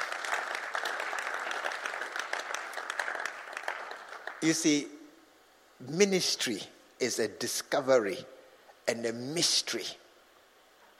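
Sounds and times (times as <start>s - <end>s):
audience clapping: 0.0s - 4.7s
speech: 4.4s - 4.9s, 5.8s - 8.3s, 8.9s - 10.0s.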